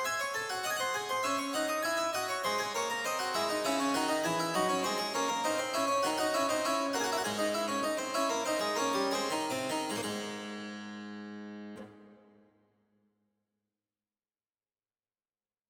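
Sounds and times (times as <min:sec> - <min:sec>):
harp lute playing: 0:00.7 - 0:10.6.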